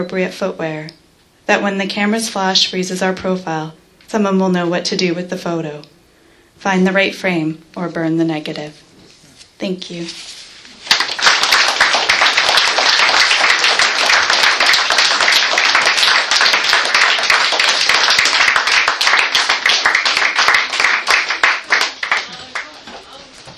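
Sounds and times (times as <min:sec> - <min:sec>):
speech: 0:00.0 - 0:06.0, 0:06.6 - 0:08.9, 0:09.6 - 0:10.8
audience clapping after a poetry reading: 0:10.8 - 0:23.0.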